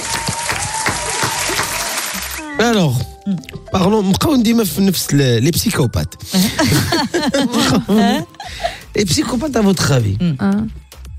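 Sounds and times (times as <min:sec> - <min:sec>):
audience applause for a participant: 0:00.0 - 0:02.6
speech: 0:02.6 - 0:10.8
laughter: 0:06.4 - 0:08.8.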